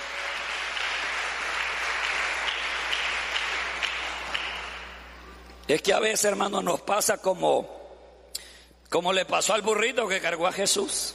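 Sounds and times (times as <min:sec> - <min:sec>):
audience applause: 0:00.0 - 0:05.2
speech: 0:05.7 - 0:07.8, 0:08.9 - 0:11.1.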